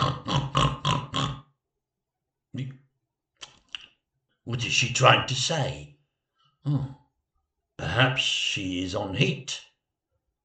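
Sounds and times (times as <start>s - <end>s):
pig grunting and snorting: 0.0s - 1.5s
speech: 2.6s - 2.8s, 4.5s - 5.9s, 6.6s - 7.0s, 8.0s - 9.7s.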